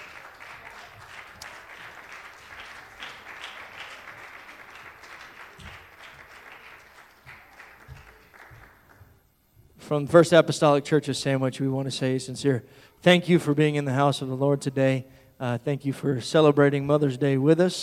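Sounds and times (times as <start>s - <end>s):
audience standing ovation: 0.0s - 9.2s
speech: 9.9s - 17.8s.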